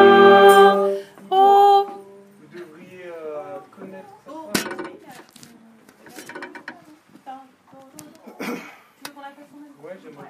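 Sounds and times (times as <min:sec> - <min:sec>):
brass band playing: 0:00.0 - 0:01.1.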